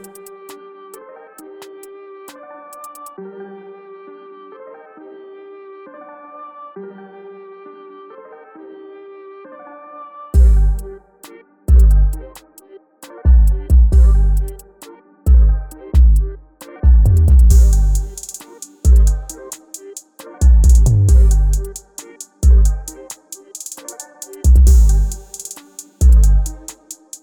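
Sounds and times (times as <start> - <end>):
instrumental beat: 0.0 - 0.6, 1.4 - 3.2, 10.4 - 27.2.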